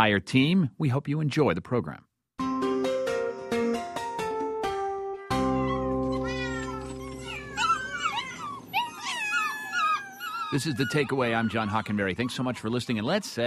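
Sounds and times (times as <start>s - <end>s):
speech: 0.0s - 2.1s, 10.5s - 13.4s
plucked piano-like notes: 2.4s - 7.4s
kittens meowing: 5.3s - 13.0s.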